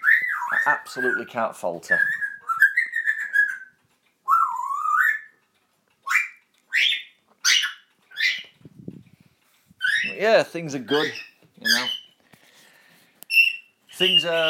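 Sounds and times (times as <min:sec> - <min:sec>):
pet parrot whistling: 0:00.0 - 0:01.3, 0:01.9 - 0:05.4, 0:06.0 - 0:08.5, 0:09.8 - 0:10.2, 0:10.9 - 0:12.2, 0:13.3 - 0:14.4
speech: 0:00.6 - 0:02.3, 0:10.2 - 0:11.3, 0:14.0 - 0:14.4.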